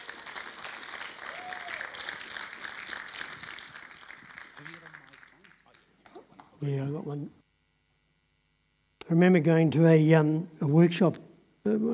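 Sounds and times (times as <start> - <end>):
audience clapping: 0.0 - 7.0
speech: 6.6 - 7.4, 9.1 - 11.9.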